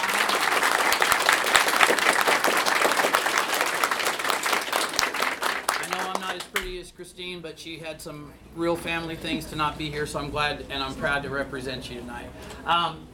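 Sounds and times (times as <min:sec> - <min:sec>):
round of applause: 0:00.0 - 0:06.6
speech: 0:07.0 - 0:13.1.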